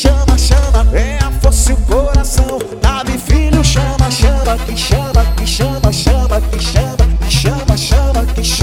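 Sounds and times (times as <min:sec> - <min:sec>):
jingle: 0:00.1 - 0:08.5.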